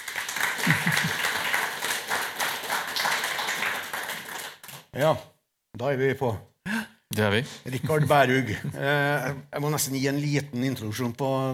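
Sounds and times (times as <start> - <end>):
audience applause: 0.0 - 4.9
laughter: 0.6 - 1.5, 7.7 - 9.2
speech: 5.0 - 11.5.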